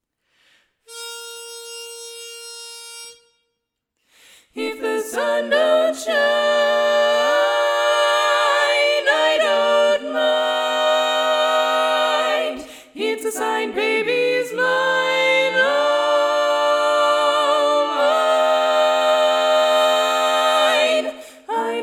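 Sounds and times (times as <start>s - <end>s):
tenor singing: 4.6s - 21.8s.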